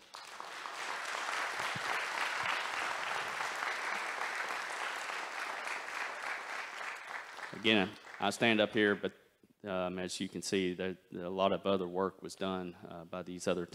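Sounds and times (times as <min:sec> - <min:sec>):
audience applause for the team members behind a construction project: 0:00.0 - 0:08.5
speech: 0:07.6 - 0:13.7.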